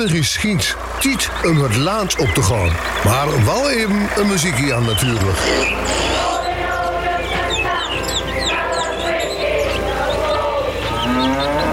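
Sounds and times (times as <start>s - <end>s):
speech: 0.0s - 6.3s
chorus of chirping birds: 0.0s - 11.7s
cow mooing: 5.2s - 6.5s, 10.2s - 11.7s.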